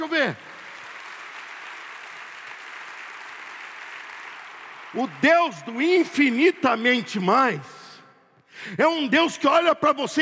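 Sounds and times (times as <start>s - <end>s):
audience applause: 0.0s - 5.2s
speech: 0.1s - 0.5s, 4.9s - 7.8s, 8.6s - 10.2s.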